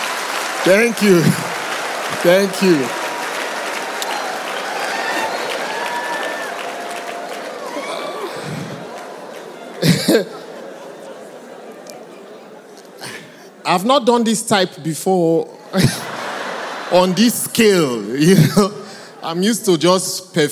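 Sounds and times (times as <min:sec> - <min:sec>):
audience applause: 0:00.0 - 0:11.5
crowd cheering: 0:00.0 - 0:13.0, 0:15.8 - 0:18.1
speech: 0:00.6 - 0:01.5, 0:02.2 - 0:03.0, 0:10.1 - 0:10.4, 0:13.7 - 0:16.0, 0:16.9 - 0:20.5
crowd murmur: 0:01.0 - 0:13.6
laughter: 0:07.5 - 0:13.5, 0:15.5 - 0:19.6.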